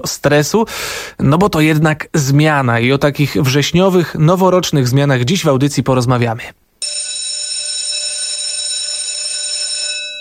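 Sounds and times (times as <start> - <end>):
speech: 0.0 - 7.0
electric school bell ringing: 6.8 - 10.1.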